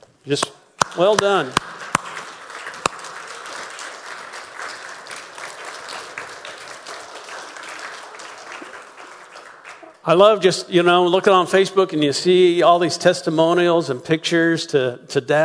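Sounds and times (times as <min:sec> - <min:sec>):
speech: 0:00.2 - 0:01.7, 0:10.1 - 0:15.4
crowd applause: 0:00.8 - 0:10.5.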